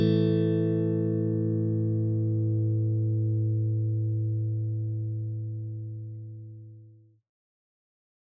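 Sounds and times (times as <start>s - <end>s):
electric guitar on middle and neck pickups: 0.0s - 6.3s.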